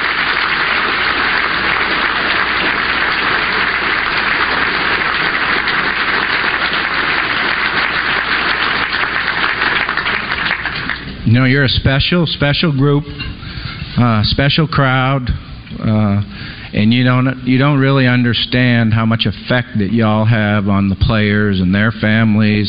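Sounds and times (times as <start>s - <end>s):
large crowd giving a standing ovation: 0.0s - 11.2s
speech: 11.4s - 13.3s, 14.0s - 22.6s.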